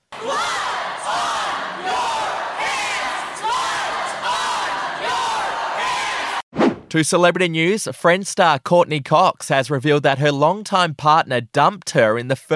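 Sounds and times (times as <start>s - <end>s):
protesters shouting from gallery: 0.1s - 6.4s
speech: 6.9s - 12.5s.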